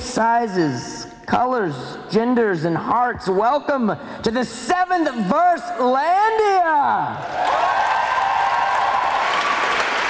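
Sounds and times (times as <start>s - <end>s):
speech: 0.2s - 7.6s
audience applause: 7.2s - 10.0s.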